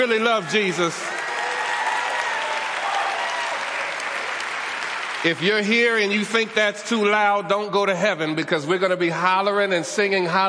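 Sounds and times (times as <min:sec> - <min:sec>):
speech: 0:00.0 - 0:01.2, 0:05.2 - 0:10.4
audience applauding: 0:00.0 - 0:06.7.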